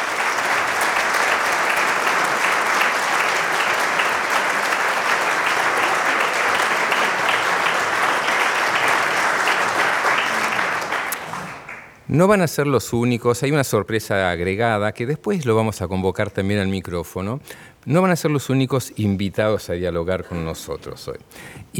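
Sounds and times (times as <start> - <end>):
thunderous audience applause: 0.0 - 12.0
speech: 12.1 - 21.7.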